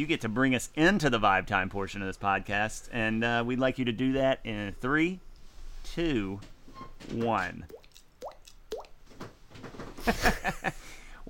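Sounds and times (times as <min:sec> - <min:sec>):
speech: 0:00.0 - 0:07.8, 0:10.0 - 0:11.0
voice imitating a water drop by popping the cheek: 0:07.7 - 0:09.0.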